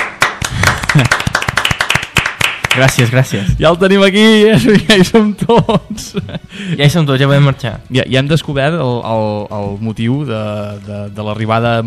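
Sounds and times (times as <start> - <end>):
audience clapping at a live Catalan show: 0.0 - 3.3
laughter: 0.6 - 1.5, 4.6 - 6.7
speech: 1.0 - 1.2, 2.8 - 11.8.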